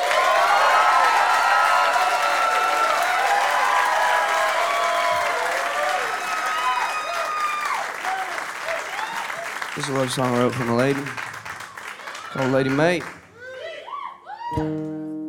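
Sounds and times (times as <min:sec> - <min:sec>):
audience cheers and whistles: 0:00.0 - 0:09.6, 0:13.4 - 0:14.8
audience clapping as a singer and band return to the stage: 0:00.0 - 0:13.7
speech: 0:09.8 - 0:11.2, 0:12.4 - 0:13.2, 0:14.6 - 0:14.9.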